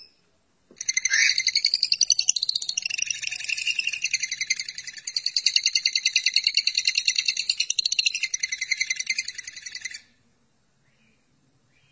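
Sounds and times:
lovebird song: 0.8s - 10.0s.

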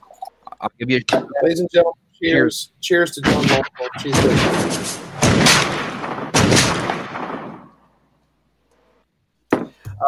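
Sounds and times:
speech: 0.6s - 5.7s
gunshot sound effect: 3.2s - 7.8s.

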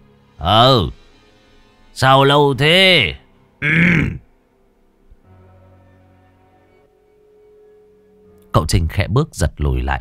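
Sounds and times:
speech: 0.4s - 1.0s, 2.0s - 4.2s, 8.5s - 9.9s
old man coughing and clearing throat: 3.6s - 4.2s.

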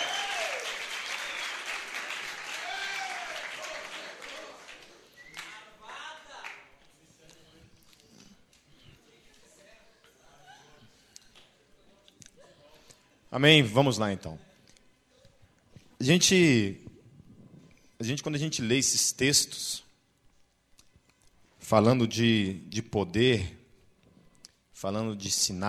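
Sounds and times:
audience applause: 0.0s - 6.6s
speech: 13.4s - 14.5s, 16.0s - 16.8s, 18.0s - 19.8s, 21.7s - 23.6s, 24.8s - 25.6s.

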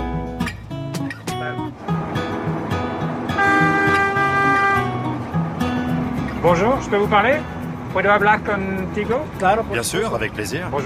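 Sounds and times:
autoferro rail-bus engine rumbling in Ecuador: 0.0s - 10.8s
autoferro rail-bus horn in Ecuador: 3.2s - 5.2s
speech: 6.4s - 10.8s.

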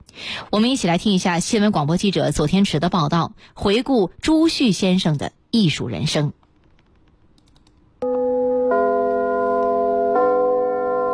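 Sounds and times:
speech: 0.4s - 6.4s
Capital Theatre curtain-opening bell ringing: 8.0s - 11.1s.

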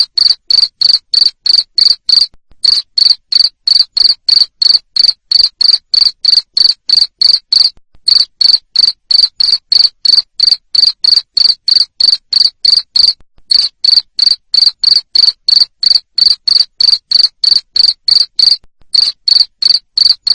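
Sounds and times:
cricket chirping: 0.0s - 20.3s.

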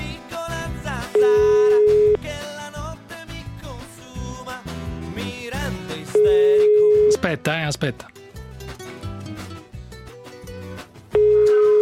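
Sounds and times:
busy music with a thumping beat: 0.0s - 7.2s, 8.4s - 11.8s
telephone line tone before a call: 1.2s - 2.2s, 6.2s - 7.2s, 11.2s - 11.8s
speech: 7.3s - 8.2s.

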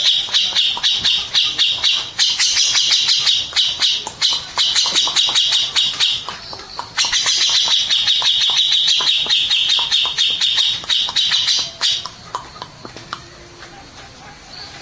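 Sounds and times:
mixed birds calling in a loud fast chorus of squeaky chirps: 0.0s - 14.7s.

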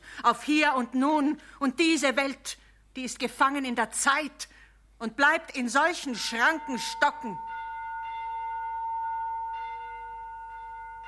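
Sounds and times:
speech: 0.2s - 7.5s
church bell ringing: 6.1s - 11.0s.

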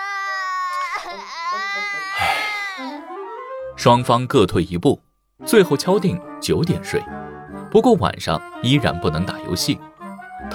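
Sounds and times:
two AI nurses crying and sobbing on command: 0.0s - 3.1s
speech: 1.0s - 10.5s.

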